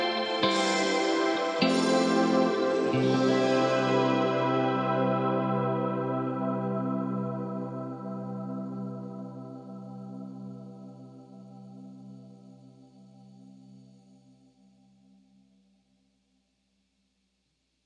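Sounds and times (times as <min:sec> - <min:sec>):
1980s fusion music: 0:00.0 - 0:08.6.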